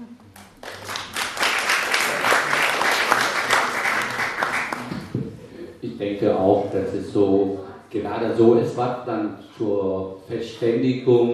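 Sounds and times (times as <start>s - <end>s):
audience applause: 0.4s - 5.2s
speech: 6.1s - 11.3s.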